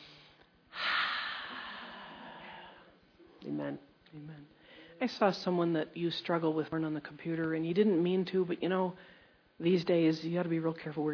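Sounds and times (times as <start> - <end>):
deep breath in during a prayer: 0.0 - 2.9
speech: 3.4 - 11.1.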